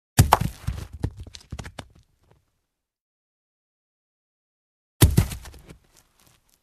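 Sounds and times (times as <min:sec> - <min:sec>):
stone thrown into mud: 0:00.2 - 0:01.8, 0:05.0 - 0:05.8.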